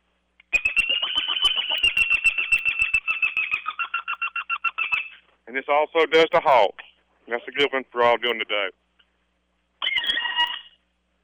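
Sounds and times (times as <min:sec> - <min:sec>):
pileated woodpecker locator call: 0:00.5 - 0:05.3, 0:09.8 - 0:10.8
speech: 0:05.5 - 0:08.8.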